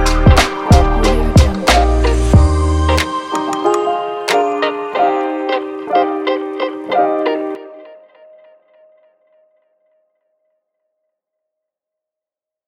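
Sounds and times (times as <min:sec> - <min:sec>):
hip hop music: 0:00.0 - 0:08.0.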